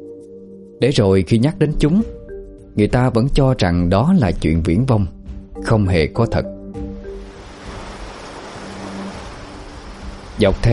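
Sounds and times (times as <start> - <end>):
speech: 0.8 - 2.2, 2.8 - 6.6, 10.4 - 10.7
ocean waves lapping on shore: 7.0 - 10.7.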